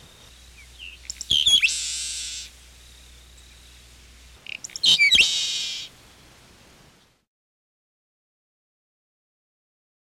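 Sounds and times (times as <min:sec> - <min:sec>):
Seaside Sparrow calling: 0:00.0 - 0:06.2.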